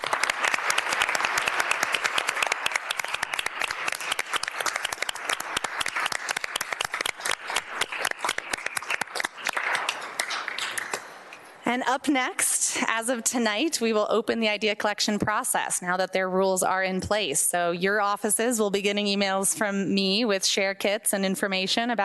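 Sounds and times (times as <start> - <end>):
crowd applauding: 0.0 - 11.3
speech: 11.7 - 22.0.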